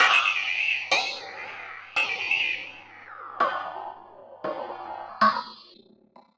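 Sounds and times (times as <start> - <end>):
ring modulated cymbal through contact mic: 0.0 - 3.4.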